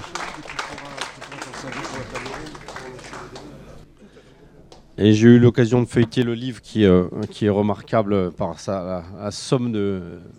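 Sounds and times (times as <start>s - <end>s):
audience applause: 0.0s - 3.8s
speech: 5.0s - 10.3s.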